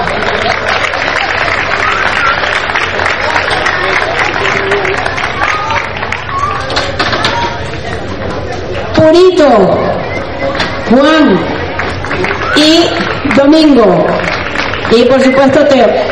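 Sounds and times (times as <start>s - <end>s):
crowd clapping: 0.0s - 8.1s, 11.3s - 16.1s
loud chatter and cheering voices: 0.0s - 16.1s
speech: 9.0s - 9.8s, 10.9s - 11.5s, 12.2s - 14.2s, 14.9s - 16.1s.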